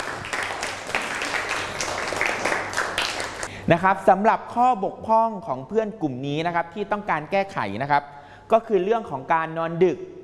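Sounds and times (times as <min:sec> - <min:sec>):
applause: 0:00.0 - 0:03.5
speech: 0:03.7 - 0:10.2.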